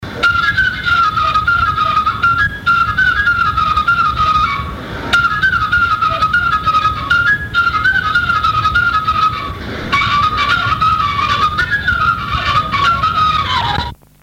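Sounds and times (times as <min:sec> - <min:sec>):
folk dance music from Vaslui: 0:00.0 - 0:14.0.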